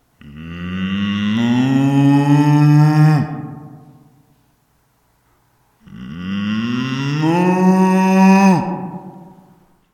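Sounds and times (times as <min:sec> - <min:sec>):
cow mooing: 0:00.2 - 0:03.7, 0:05.9 - 0:09.2.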